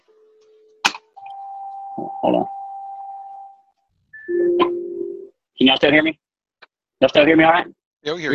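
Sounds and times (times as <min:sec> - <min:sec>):
incoming-call alert on a phone: 0:01.2 - 0:03.6, 0:04.2 - 0:05.3
speech: 0:02.0 - 0:02.6, 0:05.6 - 0:06.2, 0:07.0 - 0:08.3.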